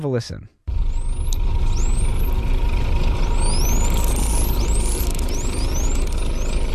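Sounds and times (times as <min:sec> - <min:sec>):
bottlenose dolphin signature whistle: 0:00.9 - 0:02.4, 0:03.1 - 0:06.7.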